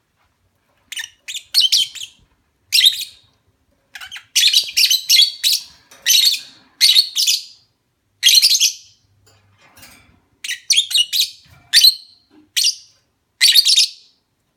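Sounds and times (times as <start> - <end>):
lovebird chirping mating call: 0.9 - 3.3, 3.9 - 9.0, 10.4 - 14.5.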